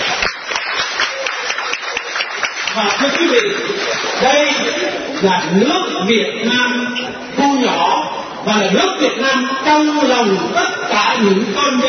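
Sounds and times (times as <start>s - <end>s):
applause at a Vietnamese community gathering for a guest professor: 0.0s - 4.2s
laughter: 1.0s - 5.2s
speech: 2.8s - 11.8s.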